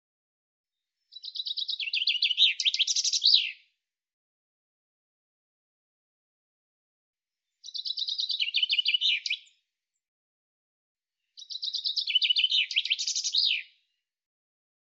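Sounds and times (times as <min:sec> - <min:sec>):
common chaffinch song phrase: 0:00.8 - 0:03.8, 0:07.4 - 0:09.7, 0:11.2 - 0:14.0.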